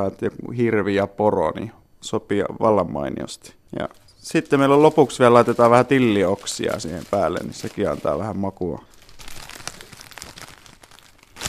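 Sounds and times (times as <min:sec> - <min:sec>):
speech: 0:00.0 - 0:08.9
plastic wrap crinkling while wrapping and closing a food package: 0:03.9 - 0:11.4.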